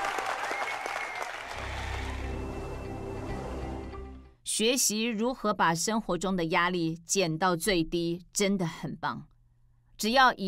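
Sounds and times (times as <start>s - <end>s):
large audience applauding: 0.0s - 3.0s
low sustained droning tone: 1.6s - 4.2s
speech: 4.6s - 9.3s, 10.0s - 10.4s.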